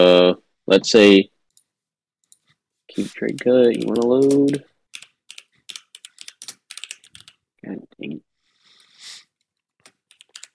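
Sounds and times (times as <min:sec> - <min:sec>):
speech: 0:00.0 - 0:01.3, 0:03.0 - 0:04.7, 0:07.6 - 0:08.3
typing on a laptop keyboard: 0:03.3 - 0:07.4, 0:09.8 - 0:10.5.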